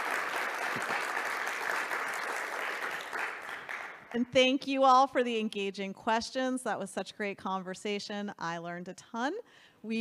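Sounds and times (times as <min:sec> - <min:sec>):
audience applause: 0:00.0 - 0:04.0
speech: 0:04.1 - 0:09.9.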